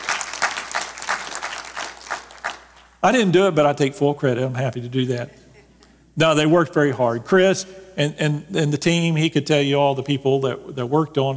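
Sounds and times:
audience applause: 0.0 - 2.8
speech: 3.0 - 5.4, 6.2 - 11.3.

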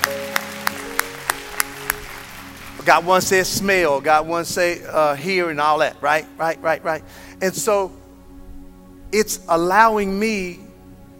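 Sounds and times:
audience clapping hands: 0.0 - 4.2
speech: 2.9 - 8.0, 9.1 - 10.6.

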